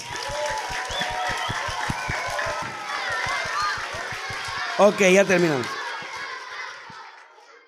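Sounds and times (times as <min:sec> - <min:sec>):
cheering voices: 0:00.0 - 0:07.6
crowd applause: 0:00.0 - 0:07.6
quick regular low thumping: 0:01.1 - 0:04.8
speech: 0:04.8 - 0:05.8.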